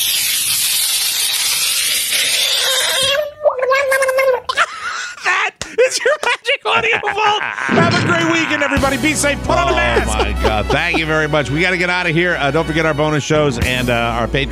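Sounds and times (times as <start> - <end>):
splashy hissing noise: 0.0 - 3.0
frog screaming after being put in water: 1.7 - 4.5
laughter: 4.5 - 11.5
speech: 6.8 - 14.5.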